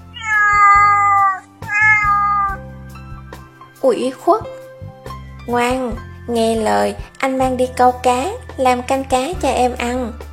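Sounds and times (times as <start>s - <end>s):
cat meowing: 0.0s - 2.6s
speech: 3.8s - 4.6s, 5.5s - 10.3s.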